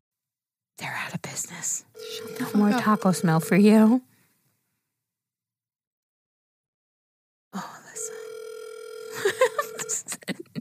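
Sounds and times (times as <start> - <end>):
speech: 0.8 - 4.1
telephone dialing clicks and beeps: 2.0 - 3.7
steady buzzing telephone tone: 2.0 - 4.0, 8.0 - 10.1
laughter: 9.1 - 10.5.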